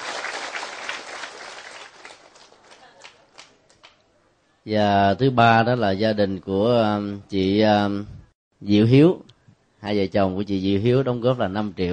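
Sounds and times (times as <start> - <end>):
audience applause: 0.0 - 3.6
speech: 4.7 - 11.9.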